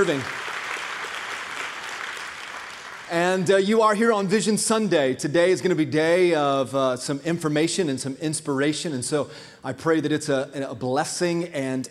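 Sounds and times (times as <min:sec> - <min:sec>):
speech: 0:00.0 - 0:00.4, 0:03.1 - 0:11.8
audience applause: 0:00.0 - 0:03.2.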